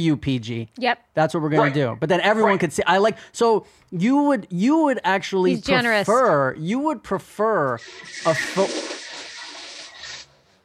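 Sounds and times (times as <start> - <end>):
speech: 0.0 - 9.0
toilet flushing: 7.8 - 10.3.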